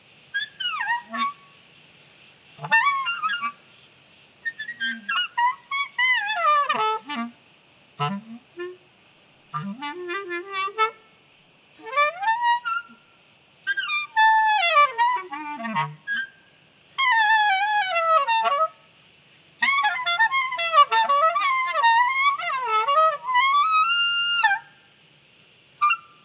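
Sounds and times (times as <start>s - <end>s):
crickets chirping: 0.0s - 26.2s.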